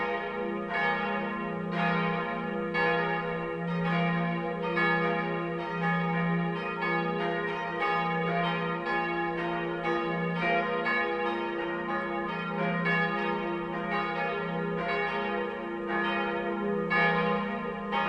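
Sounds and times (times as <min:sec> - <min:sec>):
multi-voice bell peal of three bells: 0:00.0 - 0:18.0.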